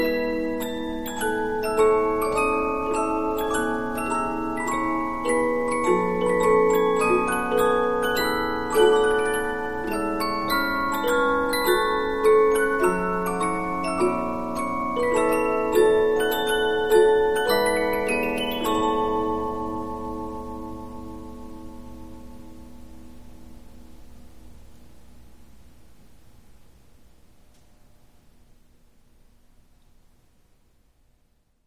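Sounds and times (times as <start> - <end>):
Polyphon 15-inch disc music box playing: 0.0 - 21.6.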